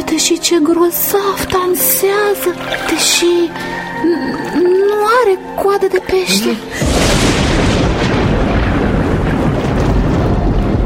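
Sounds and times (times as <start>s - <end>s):
speech: 0.2s - 7.3s
thunder of an approaching storm: 6.8s - 10.8s.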